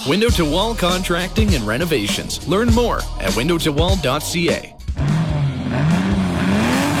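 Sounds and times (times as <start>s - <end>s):
speech: 0.1s - 4.8s
race car engines revving on a track: 0.9s - 6.9s
tires squealing: 5.0s - 6.9s.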